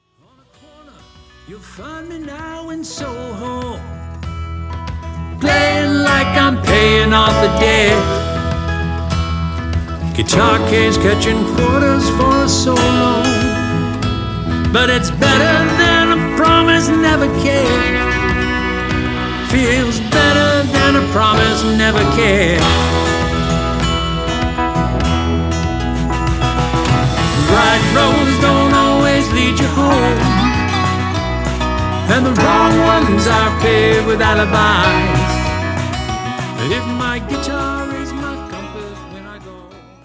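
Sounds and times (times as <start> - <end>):
guitar: 0.0 - 40.0.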